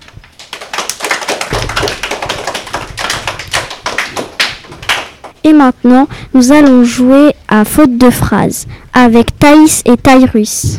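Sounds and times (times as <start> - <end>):
audience applause: 0.3 - 5.4
speech: 5.4 - 10.7.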